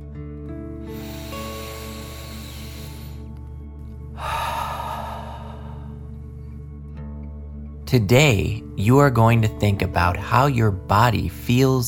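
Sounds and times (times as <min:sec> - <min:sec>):
deep breath in and out: 0:00.8 - 0:03.4, 0:04.1 - 0:06.7
speech: 0:07.9 - 0:11.8.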